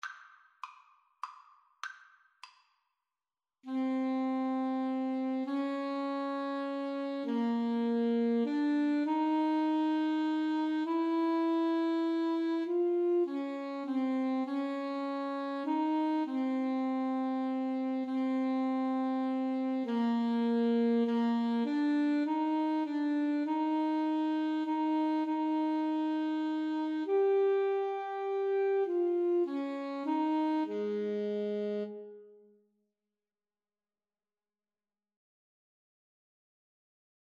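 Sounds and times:
alto saxophone duet: 3.7 - 32.6.

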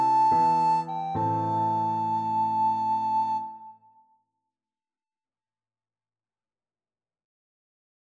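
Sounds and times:
recorder karaoke: 0.0 - 3.7.

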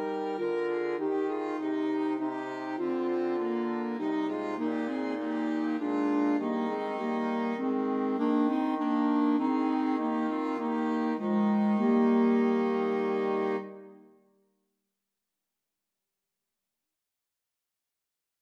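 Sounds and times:
flexible ensemble of four players: 0.0 - 14.0.

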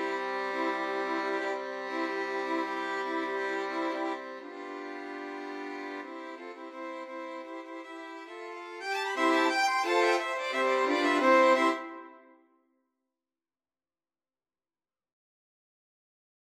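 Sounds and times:
violin ensemble: 0.0 - 12.2.

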